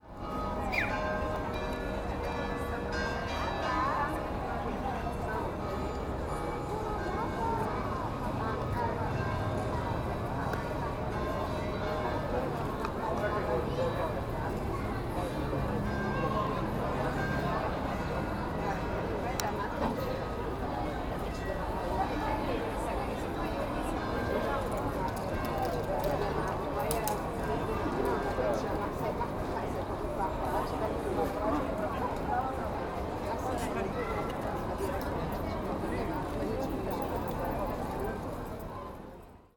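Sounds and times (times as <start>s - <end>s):
street ambience in Genova: 0.0s - 39.5s.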